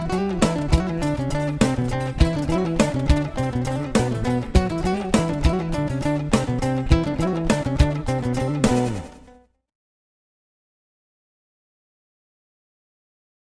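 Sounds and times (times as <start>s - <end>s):
jazz fusion band playing: 0.0s - 9.2s.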